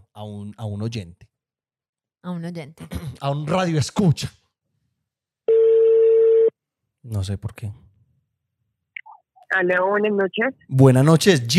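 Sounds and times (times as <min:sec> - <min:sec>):
speech: 0:00.2 - 0:01.3, 0:02.2 - 0:04.4, 0:07.0 - 0:07.8, 0:09.5 - 0:11.5
phone line ringing on a call: 0:05.5 - 0:06.5.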